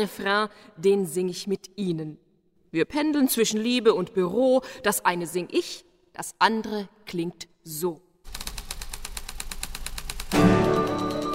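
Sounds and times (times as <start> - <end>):
speech: 0.0 - 8.0
typewriters clattering: 8.3 - 11.3.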